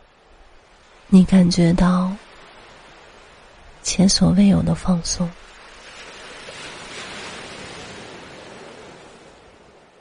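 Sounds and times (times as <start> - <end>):
ocean waves: 0.0 - 10.0
speech: 1.1 - 2.2, 3.9 - 5.6.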